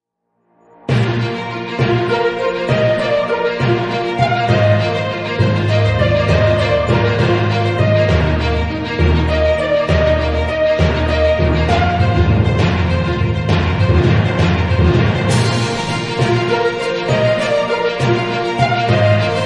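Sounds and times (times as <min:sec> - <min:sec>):
newsroom news theme music: 0:00.9 - 0:19.4.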